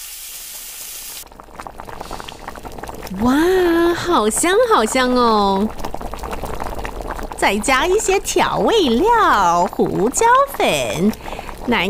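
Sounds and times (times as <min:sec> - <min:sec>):
onions and mushrooms frying: 0:00.0 - 0:11.8
speech: 0:03.1 - 0:05.8, 0:07.4 - 0:11.8.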